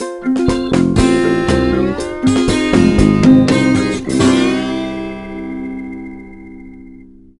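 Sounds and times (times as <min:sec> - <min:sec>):
jingle: 0:00.0 - 0:07.0.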